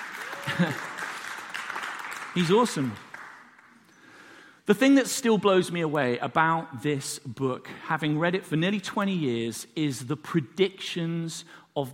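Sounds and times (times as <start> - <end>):
crowd clapping: 0.0 - 4.0
speech: 0.5 - 0.9, 2.4 - 3.0, 4.7 - 11.9.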